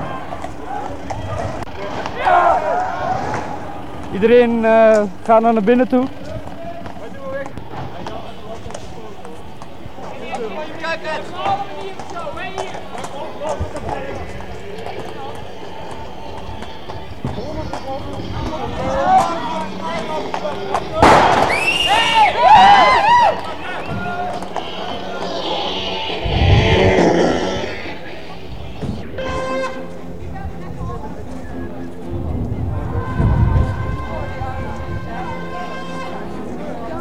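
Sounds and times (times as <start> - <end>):
police horses' hooves clattering: 0.0 - 29.0
crowd voices and shouting: 0.0 - 36.9
speech: 4.1 - 6.2
smoke bombs hissing and whistling: 15.2 - 29.1
smoke bomb bursting: 21.0 - 21.7.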